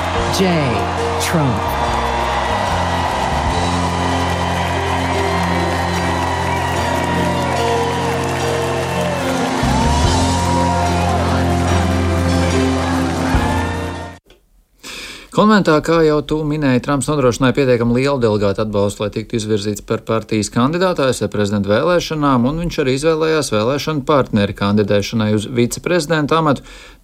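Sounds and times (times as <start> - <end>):
convention crowd ovation: 0.0 - 14.2
speech: 0.3 - 1.9, 15.4 - 27.0.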